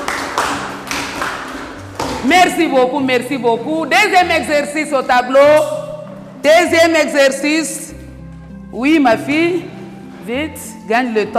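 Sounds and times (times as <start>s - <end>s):
classroom applause: 0.0s - 2.0s
speech: 2.2s - 5.8s, 6.4s - 7.8s, 8.7s - 9.7s, 10.3s - 11.3s.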